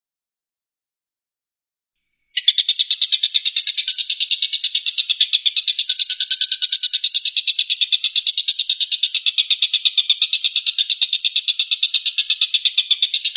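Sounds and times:
stork-billed kingfisher rattling call: 0:02.4 - 0:13.3.

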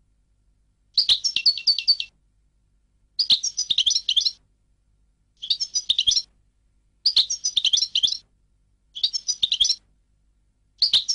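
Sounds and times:
European goldfinch song: 0:01.0 - 0:02.1, 0:03.2 - 0:04.4, 0:05.4 - 0:06.2, 0:07.1 - 0:08.2, 0:09.0 - 0:09.8, 0:10.8 - 0:11.1.

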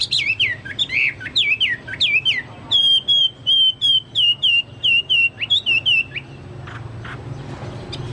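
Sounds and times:
Chinese hwamei song: 0:00.2 - 0:06.3.

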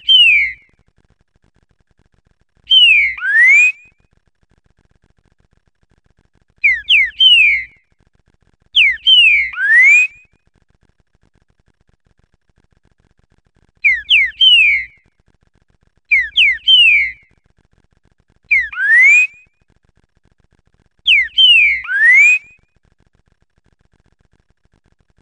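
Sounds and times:
green-winged saltator song of rich slurred rising and falling whistles: 0:00.0 - 0:00.7, 0:02.7 - 0:03.9, 0:06.6 - 0:07.8, 0:08.8 - 0:10.2, 0:13.8 - 0:15.0, 0:16.1 - 0:17.3, 0:18.5 - 0:19.5, 0:21.1 - 0:22.6.

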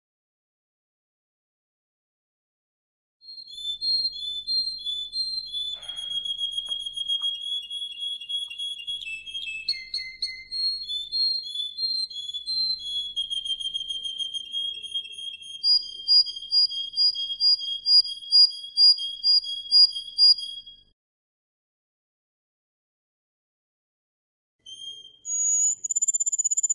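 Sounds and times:
Atlantic canary singing with rolling trills and whistled notes: 0:03.2 - 0:20.9, 0:24.6 - 0:26.7.

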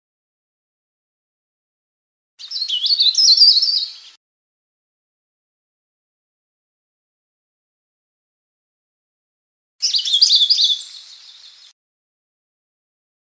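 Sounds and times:
Sulawesi leaf warbler chirping: 0:02.4 - 0:04.2, 0:09.8 - 0:11.7.

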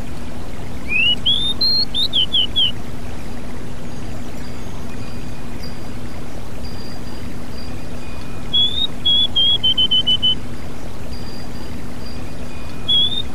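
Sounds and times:
Pied bushchat song: 0:00.8 - 0:02.8, 0:04.9 - 0:13.3.

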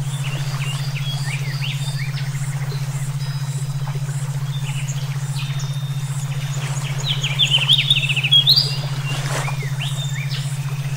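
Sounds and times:
several songbirds chirping and twittering: 0:00.2 - 0:10.8.

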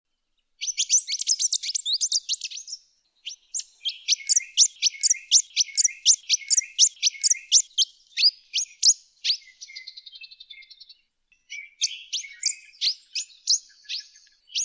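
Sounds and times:
pin-tailed whydah singing squeaky twitters: 0:00.6 - 0:10.9, 0:11.5 - 0:14.6.

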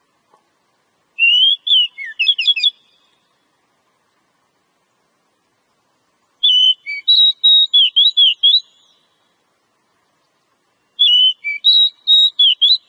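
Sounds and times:
Oriental magpie-robin song used as a lure recording: 0:01.2 - 0:03.3, 0:06.4 - 0:09.2, 0:10.7 - 0:12.8.

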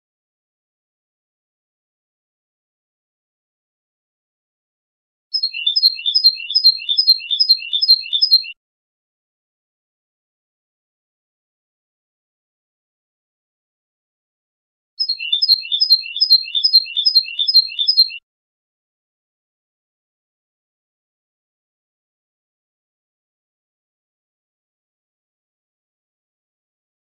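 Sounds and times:
European goldfinch song: 0:05.4 - 0:08.6, 0:15.0 - 0:18.2.

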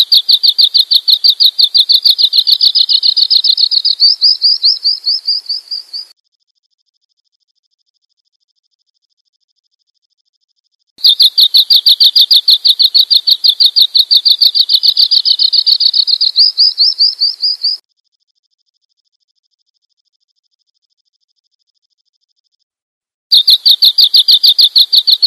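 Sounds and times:
bird chirping: 0:00.0 - 0:06.1, 0:11.0 - 0:17.8, 0:23.3 - 0:25.2.

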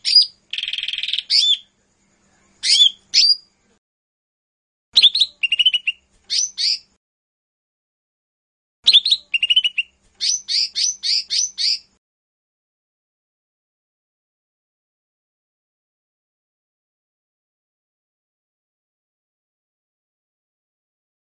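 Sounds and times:
Lesser green leafbird song with chirps and buzzy trills: 0:00.0 - 0:03.8, 0:05.0 - 0:07.0, 0:08.8 - 0:12.0.

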